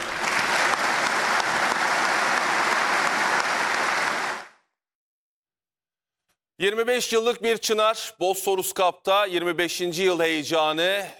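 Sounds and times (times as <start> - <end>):
audience in a hall applauding families of veterans at a Veterans Day ceremony: 0.0 - 4.7
speech: 6.6 - 11.1.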